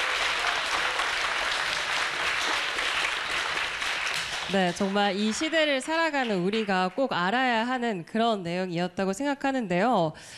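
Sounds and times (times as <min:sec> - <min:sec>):
crowd applauding after a lecture: 0:00.0 - 0:07.1
speech: 0:04.5 - 0:10.3.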